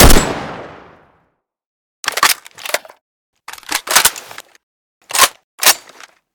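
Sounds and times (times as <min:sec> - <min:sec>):
assault rifle manipulation: 0:02.0 - 0:06.2.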